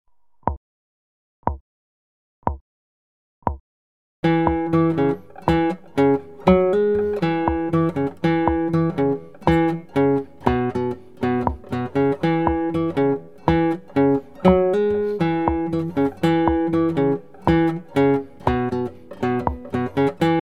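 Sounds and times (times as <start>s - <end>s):
musical riff: 4.2s - 20.4s.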